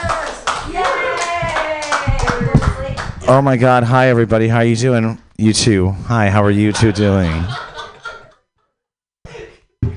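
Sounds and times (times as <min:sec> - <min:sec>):
excited shouting voices: 0:00.0 - 0:02.6
audience clapping and cheering at a live comedy show: 0:00.0 - 0:03.6
speech: 0:03.3 - 0:07.7
laughter: 0:06.4 - 0:08.5.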